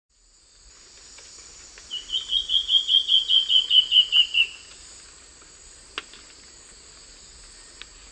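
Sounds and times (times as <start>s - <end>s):
bird giving rapid descending trills: 1.9s - 4.7s.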